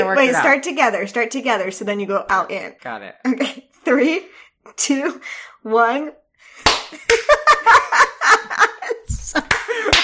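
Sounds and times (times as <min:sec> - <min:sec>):
speech: 0:00.1 - 0:06.2, 0:06.9 - 0:10.0
hand clapping: 0:06.6 - 0:07.6, 0:09.1 - 0:10.0
laughter: 0:07.1 - 0:10.0.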